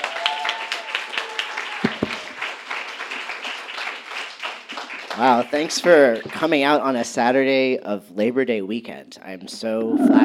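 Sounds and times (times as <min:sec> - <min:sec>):
audience round of applause: 0:00.0 - 0:06.4
speech: 0:05.2 - 0:10.2.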